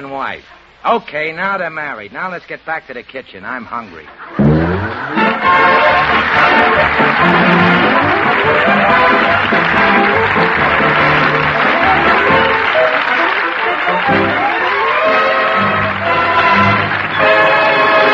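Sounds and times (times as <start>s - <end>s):
speech: 0.0s - 5.7s, 6.4s - 7.7s
theater audience applause: 4.4s - 18.1s.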